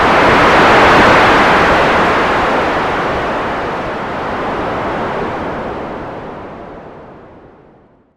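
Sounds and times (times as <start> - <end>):
ocean: 0.0 - 8.1.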